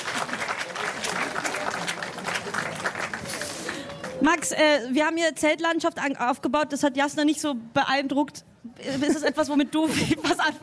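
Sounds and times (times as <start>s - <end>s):
audience applause: 0.0s - 4.5s
speech: 4.2s - 10.6s.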